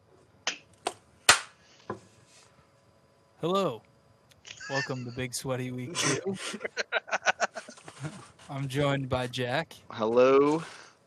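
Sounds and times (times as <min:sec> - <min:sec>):
sharp claps or snaps: 0:00.5 - 0:01.6
speech: 0:03.4 - 0:03.9, 0:04.7 - 0:07.0, 0:08.0 - 0:10.8
laughter: 0:04.5 - 0:08.2.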